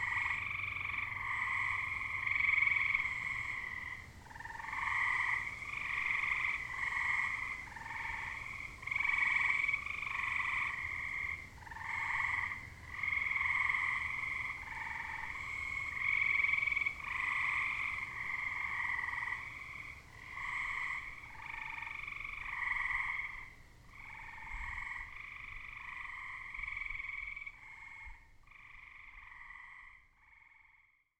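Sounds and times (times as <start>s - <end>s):
grey treefrogs calling: 0.0s - 31.0s.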